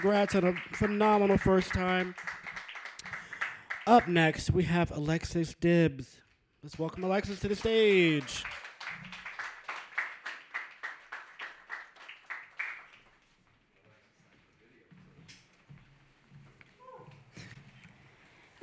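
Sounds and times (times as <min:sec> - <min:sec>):
speech: 0:00.0 - 0:02.4, 0:03.9 - 0:08.6
audience applause for a poet at an open mic: 0:00.0 - 0:04.7, 0:06.8 - 0:13.2.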